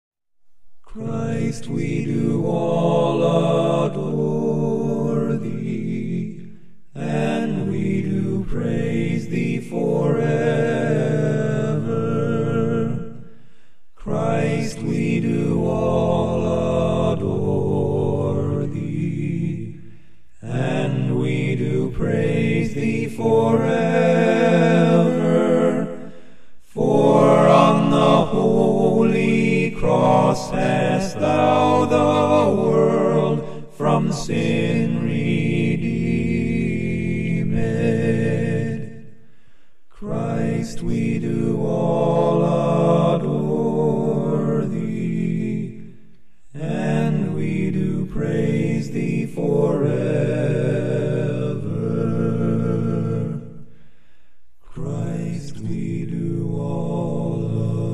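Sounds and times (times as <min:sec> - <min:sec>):
a cappella hymn: 0:00.5 - 0:57.9.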